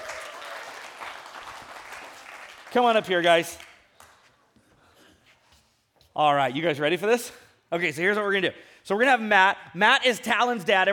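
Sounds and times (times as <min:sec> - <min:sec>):
audience clapping: 0:00.0 - 0:04.4
speech: 0:02.7 - 0:03.7, 0:06.2 - 0:10.9.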